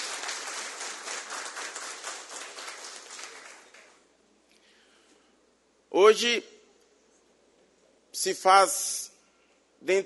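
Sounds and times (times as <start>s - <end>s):
round of applause: 0.0s - 4.1s
speech: 6.0s - 6.5s, 8.2s - 9.1s, 9.8s - 10.0s.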